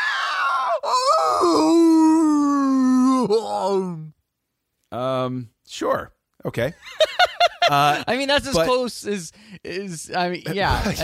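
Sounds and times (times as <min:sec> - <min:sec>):
person imitating an eerie creature-like howling yell: 0:00.0 - 0:04.0
speech: 0:05.3 - 0:07.1, 0:07.7 - 0:11.0.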